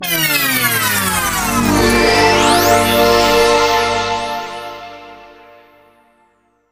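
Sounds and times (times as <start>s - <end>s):
game over jingle: 0.8s - 5.9s.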